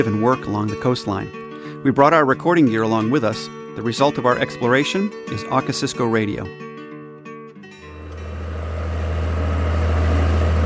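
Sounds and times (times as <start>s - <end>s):
speech: 0.0s - 6.7s
loud boat engine: 7.8s - 10.6s.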